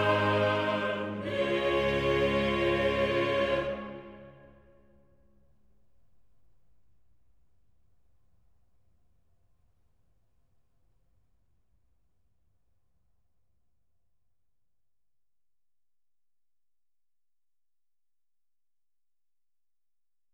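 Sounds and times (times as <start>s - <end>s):
choir singing: 0.0s - 4.8s.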